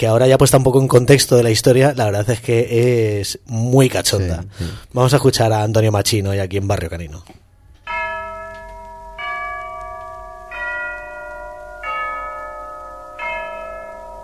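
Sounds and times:
speech: 0.0s - 7.4s
church bells tolling: 7.8s - 14.2s.

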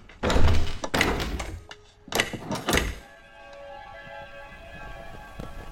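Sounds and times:
locked door rattled and yanked: 0.2s - 3.1s.

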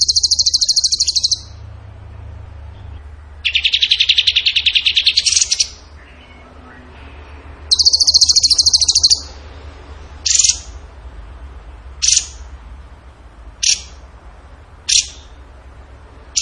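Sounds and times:
bird singing: 0.0s - 9.6s, 10.2s - 10.8s, 12.0s - 12.5s, 13.6s - 14.0s, 14.9s - 15.4s.

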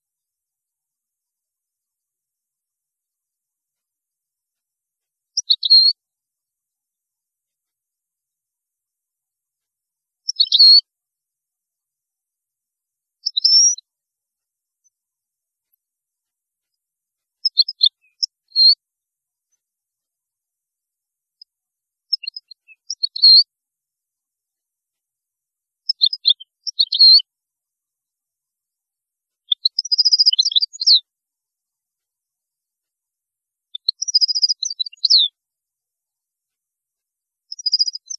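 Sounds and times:
European goldfinch song: 5.3s - 6.0s, 10.2s - 10.9s, 13.2s - 13.9s, 16.6s - 18.8s, 21.4s - 23.5s, 25.8s - 27.3s, 29.4s - 31.1s, 33.7s - 35.4s, 37.4s - 38.1s.

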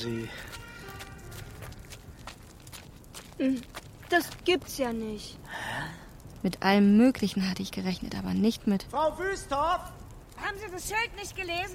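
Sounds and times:
speech: 0.0s - 0.6s, 3.4s - 5.6s, 6.4s - 11.7s
footsteps walking across a yard at a large construction site: 0.0s - 5.3s.

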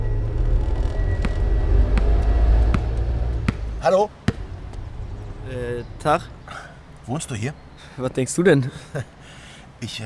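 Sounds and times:
car engine rumbling as car drives off along the street: 0.0s - 7.2s
speech: 3.8s - 4.2s, 5.5s - 6.4s, 7.1s - 9.2s, 9.8s - 10.0s.

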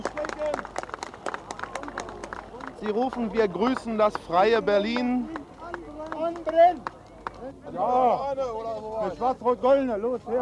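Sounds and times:
demonstrators clapping: 0.0s - 8.1s
speech: 2.8s - 5.4s, 6.5s - 10.4s.

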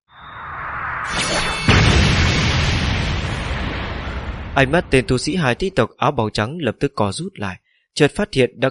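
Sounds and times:
rising whoosh: 0.1s - 5.1s
heavy explosion with rumbling roar: 0.4s - 5.9s
speech: 4.6s - 8.6s.

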